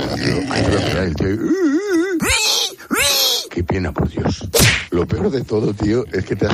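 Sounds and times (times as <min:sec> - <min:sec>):
man imitating a pig being slaughtered: 0:00.0 - 0:03.6
speech: 0:00.2 - 0:01.4, 0:03.8 - 0:06.5.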